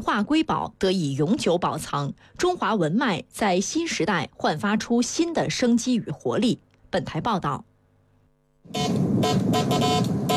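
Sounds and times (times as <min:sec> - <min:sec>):
speech: 0:00.0 - 0:07.7, 0:08.7 - 0:10.2
telegraph beeping from a restored 1970s telegraph control box on a home balcony: 0:08.7 - 0:10.3.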